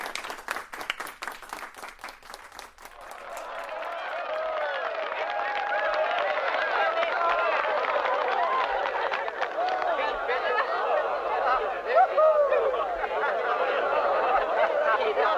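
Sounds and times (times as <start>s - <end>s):
class applauding: 0.0s - 11.7s
laughter: 3.0s - 15.3s.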